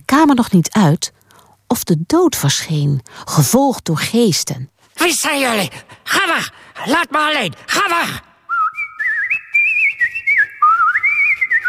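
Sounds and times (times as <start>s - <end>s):
speech: 0.2s - 8.3s
person imitating a nightingale's song with whistling and trills: 8.5s - 11.6s.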